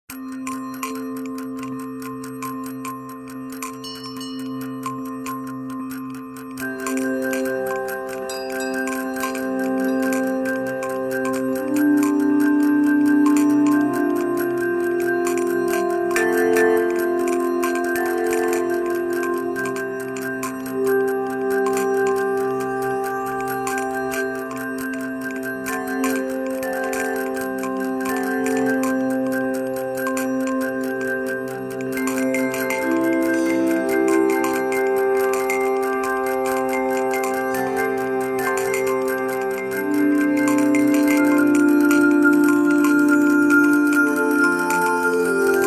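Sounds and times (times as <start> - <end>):
jingles: 0.1 - 45.6.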